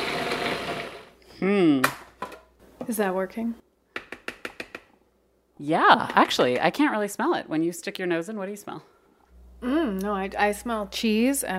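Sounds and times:
kitchen blender blending herbs into pesto: 0.0s - 1.2s
person vocalizing: 1.3s - 2.0s
speech: 1.4s - 2.0s, 2.9s - 3.7s, 5.6s - 8.9s, 9.6s - 11.5s.

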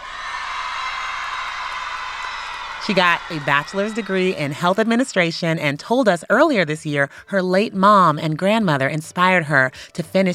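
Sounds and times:
crowd cheering wildly: 0.0s - 5.3s
speech: 2.9s - 10.3s.

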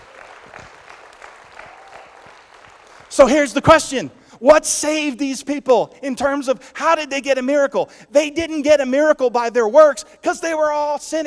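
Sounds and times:
crowd clapping: 0.0s - 3.9s
speech: 3.1s - 11.2s.

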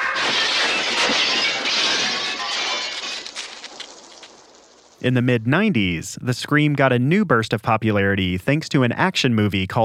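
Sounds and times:
glass shards tinkling: 0.2s - 5.0s
window glass smashing during fight scene: 0.2s - 5.0s
speech: 5.1s - 9.8s.

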